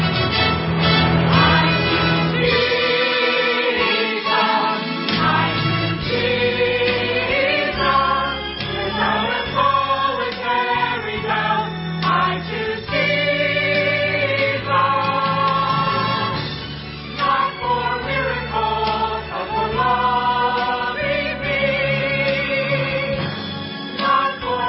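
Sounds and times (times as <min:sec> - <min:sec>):
choir singing: 0:00.1 - 0:24.6.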